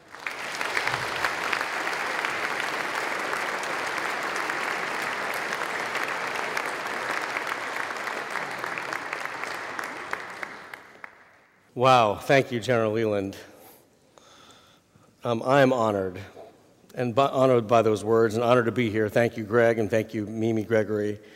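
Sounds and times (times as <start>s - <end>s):
audience in Naples applauding a visiting professor: 0.0s - 11.4s
speech: 11.8s - 13.5s, 15.2s - 16.4s, 17.0s - 21.3s.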